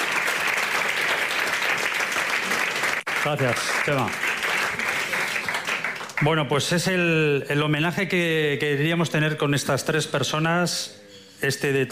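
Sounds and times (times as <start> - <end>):
audience applause: 0.0 - 6.4
speech: 3.2 - 4.3, 6.2 - 11.9.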